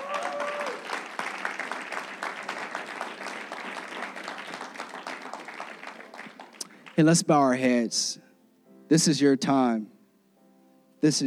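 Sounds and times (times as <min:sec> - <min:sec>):
faint cheering: 0:00.0 - 0:01.2
audience applause: 0:00.0 - 0:07.2
speech: 0:07.0 - 0:08.2, 0:08.9 - 0:09.9, 0:11.0 - 0:11.2.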